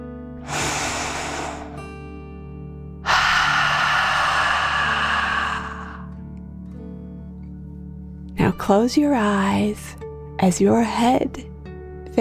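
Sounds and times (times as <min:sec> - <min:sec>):
deep breath in through the nose and out through the mouth: 0:00.4 - 0:02.4, 0:03.0 - 0:06.2
speech: 0:08.5 - 0:11.5.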